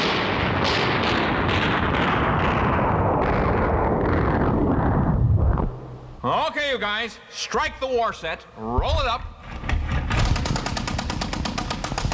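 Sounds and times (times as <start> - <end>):
war sound effect of shooting and artillery fire: 0.0 - 6.2, 8.8 - 12.1
speech: 6.8 - 9.3.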